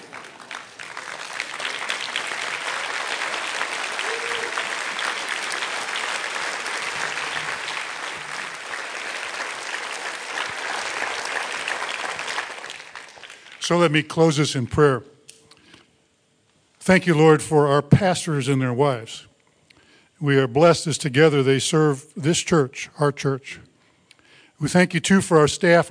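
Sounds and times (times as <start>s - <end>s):
audience applause: 0.0s - 13.7s
speech: 13.7s - 15.1s, 16.8s - 19.3s, 20.2s - 23.7s, 24.6s - 25.9s.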